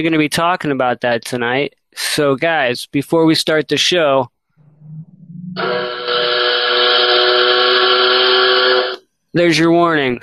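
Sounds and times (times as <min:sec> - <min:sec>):
speech: 0:00.0 - 0:05.0, 0:05.6 - 0:06.3, 0:09.3 - 0:10.2
train whistle sound effect: 0:05.6 - 0:09.0.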